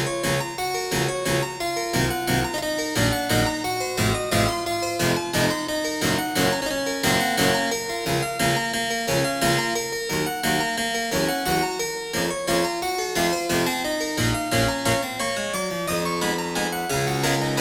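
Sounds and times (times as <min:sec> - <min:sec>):
harpsichord waltz in 31edo tuning: 0:00.0 - 0:17.6.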